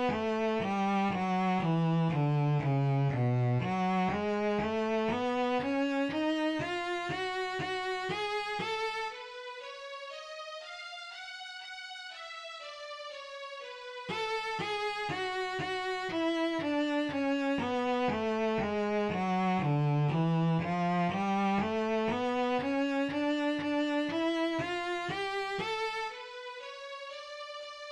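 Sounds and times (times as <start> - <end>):
bass playing two-octave melodic minor scale: 0.0 - 9.1, 14.1 - 26.2.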